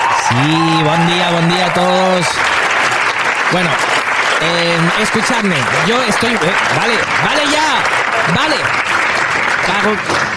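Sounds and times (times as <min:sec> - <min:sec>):
people shouting over applause: 0:00.0 - 0:01.8
audience applause: 0:00.0 - 0:10.3
speech: 0:00.3 - 0:02.5, 0:03.5 - 0:09.0, 0:09.6 - 0:10.3.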